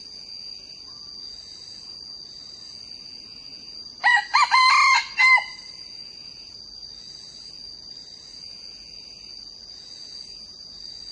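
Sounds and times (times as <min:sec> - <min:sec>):
young male red junglefowl crowing: 0:04.0 - 0:05.8.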